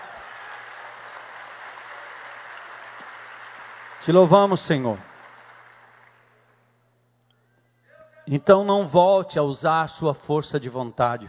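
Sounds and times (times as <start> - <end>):
audience applause: 0.0 - 6.6
speech: 4.0 - 5.1, 8.3 - 11.2.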